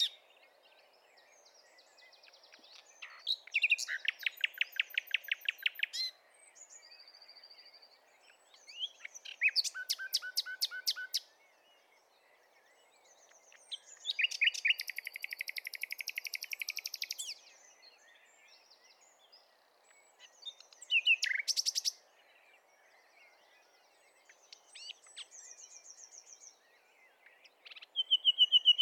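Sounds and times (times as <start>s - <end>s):
Common nightingale Luscinia megarhynchos song: 0.0s - 28.8s.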